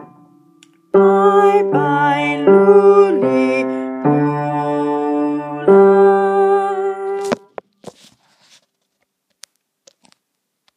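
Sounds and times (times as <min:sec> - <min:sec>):
bass playing a carol: 0:00.0 - 0:07.4.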